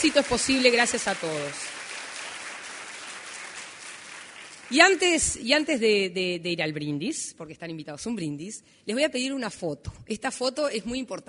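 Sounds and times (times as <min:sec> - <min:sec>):
speech: 0:00.0 - 0:01.8, 0:04.7 - 0:11.2
audience applause for the Cardiovascular Commission at a celebration event: 0:00.0 - 0:04.9.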